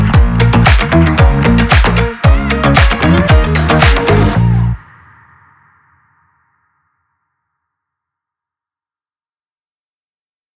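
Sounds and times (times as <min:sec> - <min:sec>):
promotional funk music for an event: 0:00.0 - 0:04.8.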